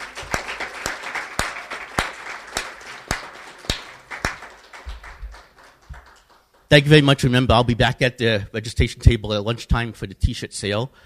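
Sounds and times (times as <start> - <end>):
audience applause: 0.0 - 6.7
speech: 6.7 - 11.0.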